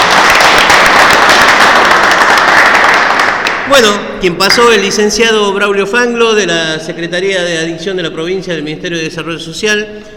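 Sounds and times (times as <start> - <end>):
applause: 0.0 - 3.9
speech: 3.7 - 10.1.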